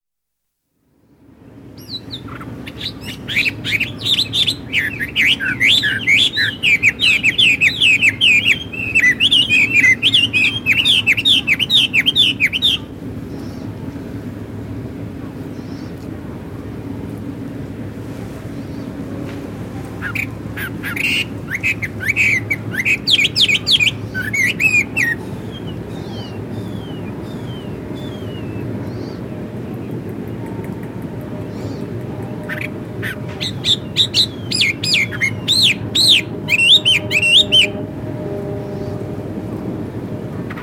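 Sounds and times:
lakeside ambience near Wuhan: 0.9 - 40.6
blackbird singing at a lake near Wuhan: 1.8 - 13.7, 20.0 - 30.4, 31.5 - 37.9.

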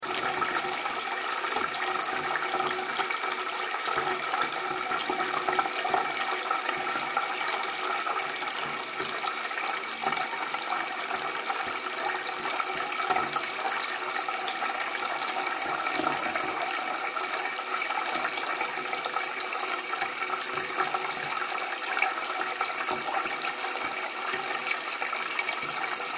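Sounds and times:
water filling a shallow bath: 0.0 - 26.1.

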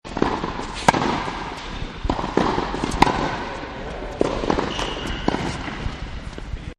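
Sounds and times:
tennis court ambience: 0.1 - 6.7.

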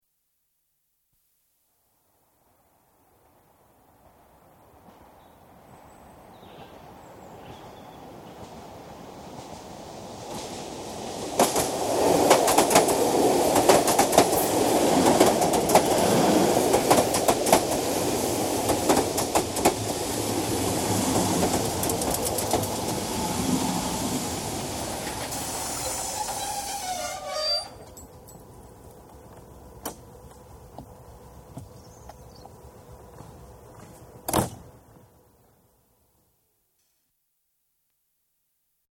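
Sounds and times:
electric train arriving at local station: 6.6 - 31.5
electric train doors: 8.3 - 28.5.

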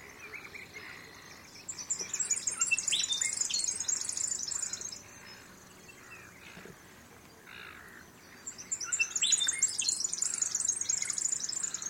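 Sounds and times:
bird calls in mangroves: 0.0 - 11.8.

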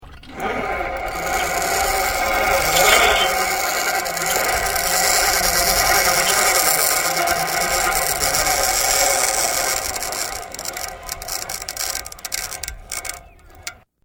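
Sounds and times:
loaded flying fox playground equipment travelling and slowing: 0.0 - 13.9.

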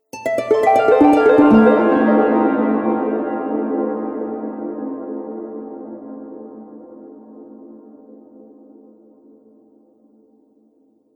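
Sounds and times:
harp cascade with delay: 0.2 - 3.3.

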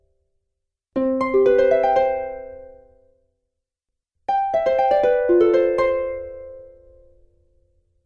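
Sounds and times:
fantasy harp: 1.0 - 2.9, 4.3 - 7.2.

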